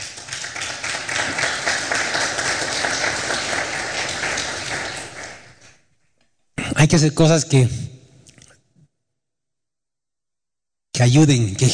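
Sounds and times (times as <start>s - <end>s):
sustained crowd applause: 0.0s - 5.8s
speech: 6.8s - 7.8s, 11.0s - 11.7s.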